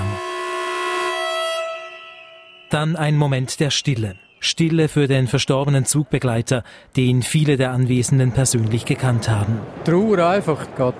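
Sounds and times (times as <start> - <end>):
train horns sounding: 0.0 - 2.8
speech: 2.7 - 10.9.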